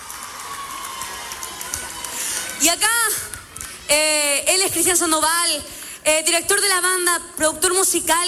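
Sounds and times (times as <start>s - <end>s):
audience applause and cheering: 0.0s - 3.9s
speech: 2.6s - 3.3s, 3.9s - 8.2s.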